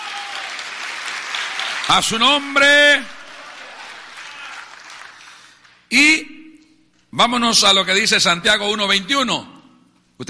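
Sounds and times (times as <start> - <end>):
audience applause: 0.0 - 5.8
speech: 1.9 - 3.2, 5.9 - 6.4, 7.2 - 9.6.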